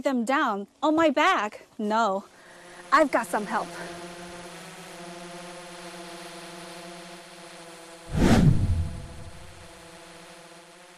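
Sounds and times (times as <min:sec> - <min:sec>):
speech: 0:00.0 - 0:04.0
cargo drone flying: 0:08.1 - 0:10.0.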